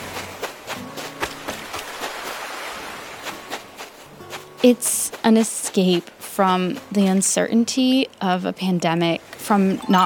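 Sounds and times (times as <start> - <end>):
surf hissing: 0.0 - 5.9
video game footsteps splashing through shallow water on a beach: 0.0 - 7.4
speech: 4.6 - 10.0.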